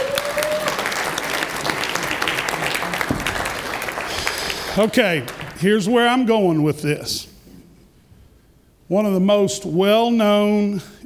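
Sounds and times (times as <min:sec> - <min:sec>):
audience applause: 0:00.0 - 0:05.7
speech: 0:04.8 - 0:07.3, 0:08.9 - 0:11.0.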